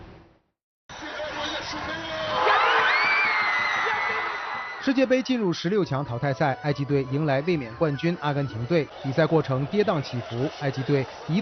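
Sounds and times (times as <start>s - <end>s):
Egyptian football fans cheering at a public screening in Cairo: 0.9s - 5.6s, 8.3s - 11.4s
speech: 4.8s - 11.4s.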